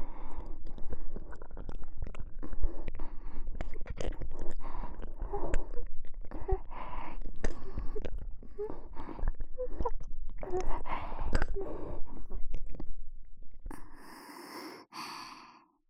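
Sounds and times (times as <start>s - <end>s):
slow sticky ear licking sounds in the right ear: 0.4s - 13.0s.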